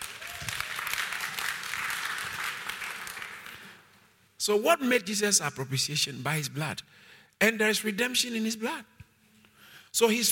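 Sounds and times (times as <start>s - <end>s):
audience applause: 0.0s - 3.8s
speech: 4.4s - 8.9s, 10.0s - 10.2s.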